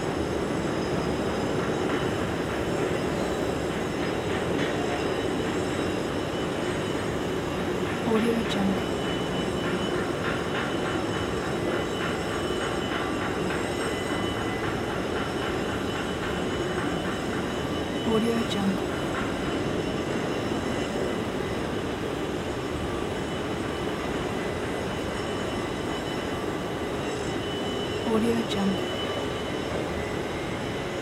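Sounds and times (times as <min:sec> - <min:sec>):
shipyard ambience: 0:00.0 - 0:30.9.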